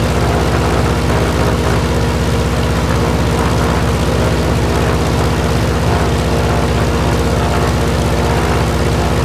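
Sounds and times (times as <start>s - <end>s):
plane: 0.0s - 9.2s.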